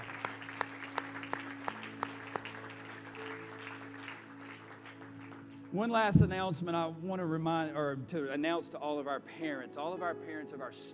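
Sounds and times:
round of applause: 0.0s - 6.2s
speech: 5.7s - 10.9s
low hum: 6.2s - 6.8s.

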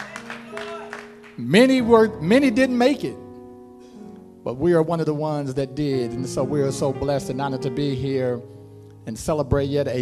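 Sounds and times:
audience hand claps: 0.0s - 1.6s
speech: 1.4s - 3.2s, 4.4s - 10.0s.

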